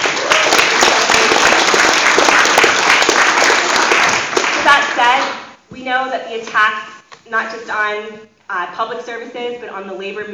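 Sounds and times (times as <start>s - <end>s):
audience round of applause: 0.0s - 5.2s
speech: 6.0s - 10.3s.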